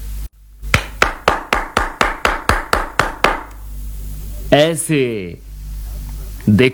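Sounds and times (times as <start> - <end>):
hands clapping: 0.7 - 3.6
speech: 4.5 - 5.5, 6.5 - 6.7.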